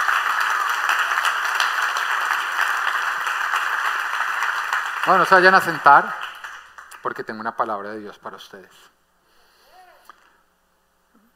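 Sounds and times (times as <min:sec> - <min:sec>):
audience applause: 0:00.0 - 0:07.2
speech: 0:05.0 - 0:06.2, 0:07.0 - 0:09.0.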